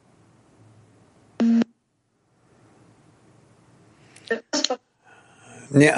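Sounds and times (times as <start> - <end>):
telephone busy tone beep: 1.4 - 1.7.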